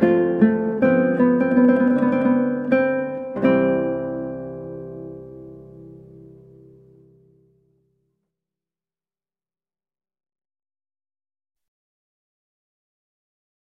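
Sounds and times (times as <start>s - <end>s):
guitar playing a larghetto from a recorder sonata in F major: 0.0s - 8.2s.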